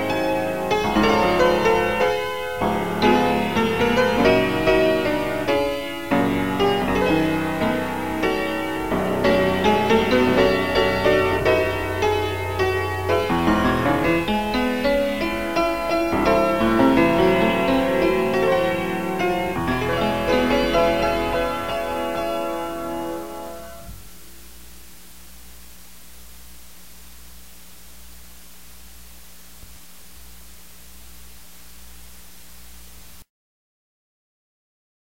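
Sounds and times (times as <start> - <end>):
piano: 0.0 - 25.4.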